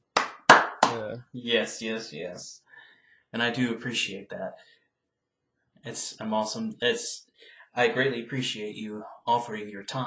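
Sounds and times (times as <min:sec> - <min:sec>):
hand clapping: 0:00.0 - 0:01.2
speech: 0:01.0 - 0:02.7, 0:03.3 - 0:04.8, 0:05.8 - 0:10.0.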